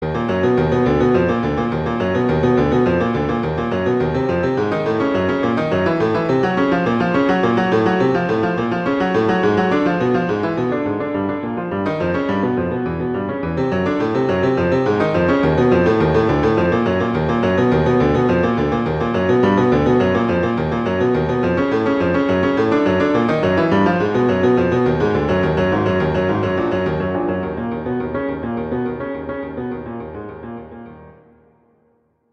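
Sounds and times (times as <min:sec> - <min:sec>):
allegro piece in E flat minor: 0:00.0 - 0:31.4.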